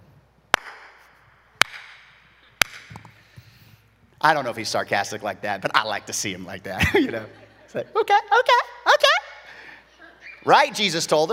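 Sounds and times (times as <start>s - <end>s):
slow clap: 0.5s - 3.2s
speech: 4.2s - 8.7s, 10.4s - 11.3s
laughter: 6.6s - 10.4s.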